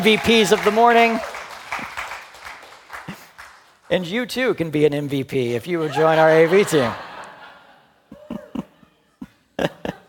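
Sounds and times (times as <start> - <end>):
speech: 0.0 - 1.9, 3.9 - 7.1
audience applause: 0.0 - 3.9
laughter: 5.8 - 10.0.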